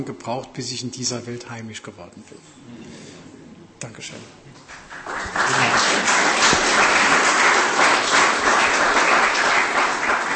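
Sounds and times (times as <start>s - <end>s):
speech: 0.0s - 2.8s, 3.8s - 6.2s
audience applause: 4.6s - 10.3s.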